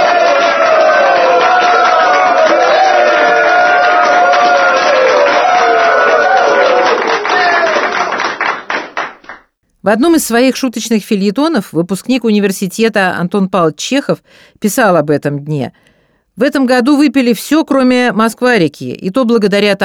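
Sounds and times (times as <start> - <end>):
large crowd cheering and shouting hurray: 0.0 - 9.4
people clapping: 0.0 - 9.6
speech: 9.8 - 19.8.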